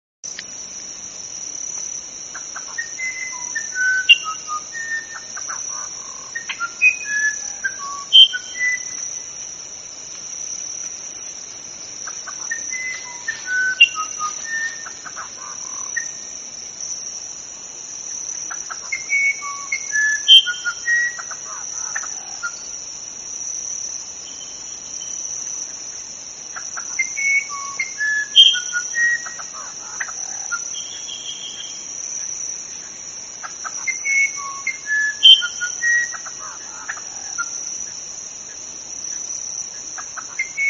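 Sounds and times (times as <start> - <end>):
uirapuru verdadeiro singing: 2.4 - 9.0, 12.0 - 16.3, 18.5 - 22.7, 26.6 - 31.9, 33.6 - 37.5, 40.0 - 40.6.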